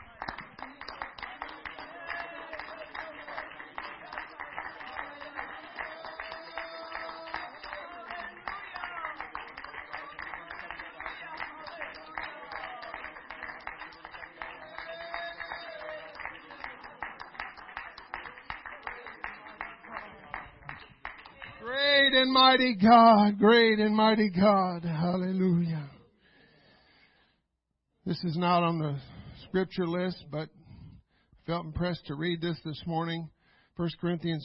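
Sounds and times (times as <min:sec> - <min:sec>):
audience clapping hands: 0:00.0 - 0:24.3
speech: 0:22.1 - 0:25.6, 0:28.2 - 0:30.6, 0:31.5 - 0:34.4.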